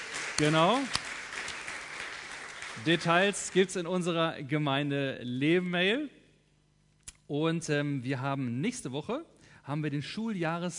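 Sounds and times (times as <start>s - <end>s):
audience applauding: 0.0s - 3.9s
speech: 0.4s - 1.0s, 2.8s - 6.2s, 7.3s - 10.7s.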